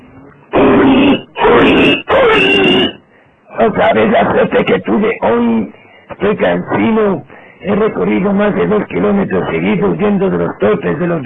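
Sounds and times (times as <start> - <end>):
pig grunting: 0.5 - 3.0
speech: 3.6 - 11.2.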